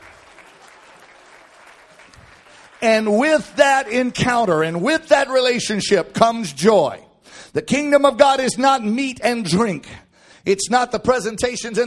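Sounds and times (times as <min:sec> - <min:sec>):
church congregation applauding: 0:00.0 - 0:04.0
speech: 0:02.8 - 0:11.8.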